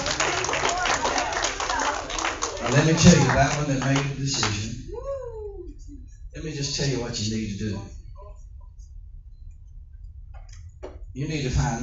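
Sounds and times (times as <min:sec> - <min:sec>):
audience clapping hands in praise: 0:00.0 - 0:04.8
speech: 0:02.7 - 0:04.8, 0:06.4 - 0:08.0, 0:11.2 - 0:11.8.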